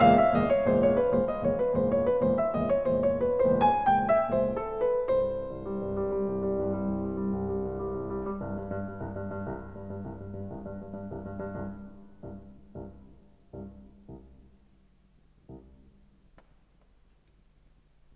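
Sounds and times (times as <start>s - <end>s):
piano piece in Bulgarian rhythm: 0.0s - 14.5s.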